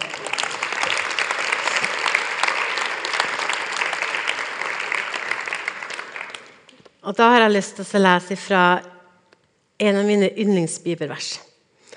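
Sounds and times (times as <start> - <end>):
audience applause: 0.0 - 6.8
speech: 7.1 - 8.9, 9.8 - 11.5.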